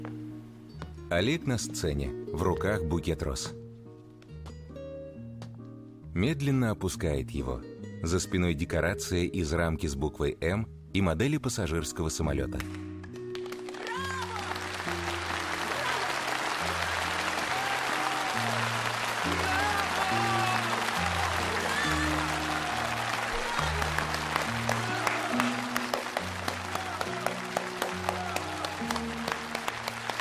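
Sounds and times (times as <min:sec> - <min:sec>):
speech: 0:01.1 - 0:03.6, 0:06.2 - 0:12.9
audience applause in theatre stalls after a stage performance: 0:13.4 - 0:30.1.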